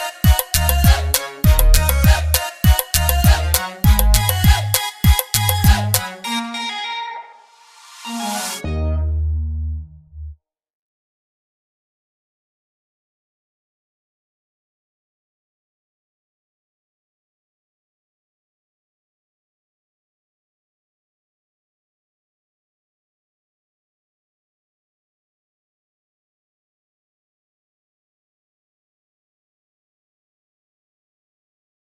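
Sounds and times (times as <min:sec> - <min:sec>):
deep bass: 0:00.6 - 0:02.4, 0:03.0 - 0:04.8, 0:05.4 - 0:06.0, 0:08.6 - 0:10.4.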